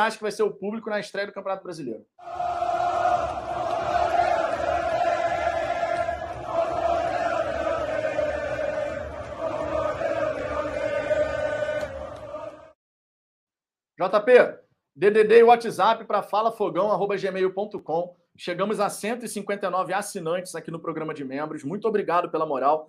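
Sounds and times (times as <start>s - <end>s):
speech: 0.0s - 2.6s, 14.0s - 22.8s
intro jingle of crowd-like chanting for a football fan show: 2.2s - 12.8s.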